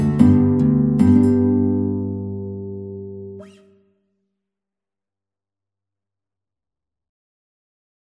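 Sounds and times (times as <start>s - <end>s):
guitar quartet concerto: 0.0s - 3.8s.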